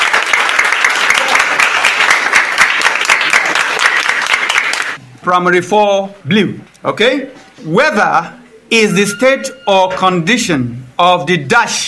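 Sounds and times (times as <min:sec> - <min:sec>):
round of applause: 0:00.0 - 0:05.0
speech: 0:05.3 - 0:11.8.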